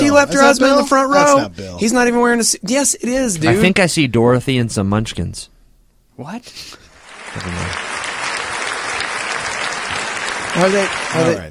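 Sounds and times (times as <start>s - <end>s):
speech: 0.2s - 5.6s, 6.2s - 6.8s, 7.4s - 7.9s, 10.6s - 11.4s
audience clapping: 6.8s - 11.4s.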